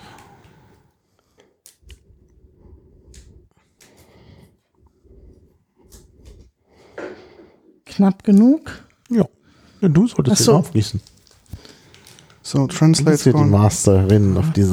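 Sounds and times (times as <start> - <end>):
speech: 8.0 - 11.1, 12.5 - 14.7
plastic or foil tea package crackling: 10.4 - 12.5.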